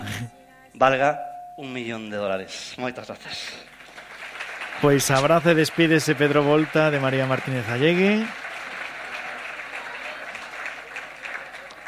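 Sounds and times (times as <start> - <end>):
speech: 0.8 - 3.7, 4.8 - 8.4
audience applause: 3.5 - 11.8.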